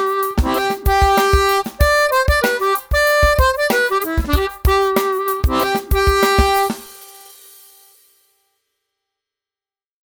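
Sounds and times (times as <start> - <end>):
harmonica riff: 0.0 - 7.3.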